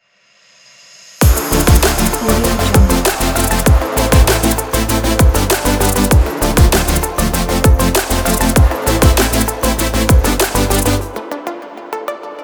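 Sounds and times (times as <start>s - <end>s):
future bass kit: 1.2s - 11.2s.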